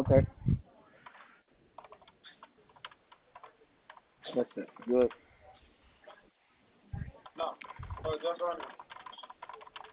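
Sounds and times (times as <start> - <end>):
speech: 0.1 - 0.5, 4.4 - 5.2, 7.4 - 8.8
faint keyboard typing: 1.0 - 5.2, 7.1 - 9.9.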